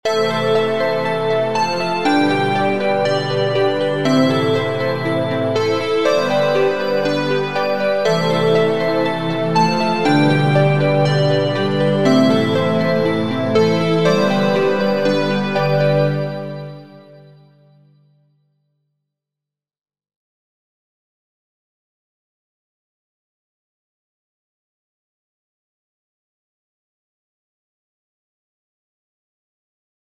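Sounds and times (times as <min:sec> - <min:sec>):
synthesizer: 0:00.0 - 0:17.9.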